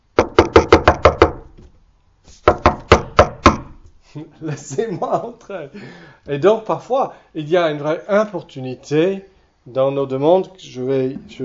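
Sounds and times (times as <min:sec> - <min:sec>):
knocking on a door: 0:00.2 - 0:01.7, 0:02.5 - 0:03.8
speech: 0:04.2 - 0:11.4.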